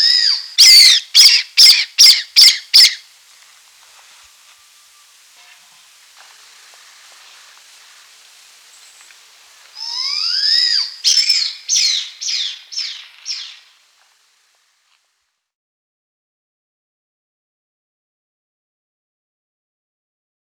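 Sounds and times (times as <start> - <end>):
blood pheasant giving loud harsh squealing notes: 0.0 - 3.0, 9.8 - 13.7.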